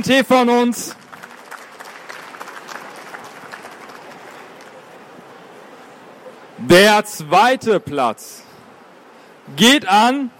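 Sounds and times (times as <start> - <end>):
speech: 0.0 - 1.0, 6.7 - 8.4, 9.5 - 10.3
audience applause: 1.0 - 5.0.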